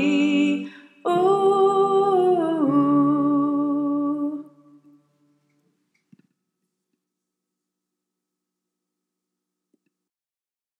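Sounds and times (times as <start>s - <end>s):
soprano vocal: 0.0s - 4.8s.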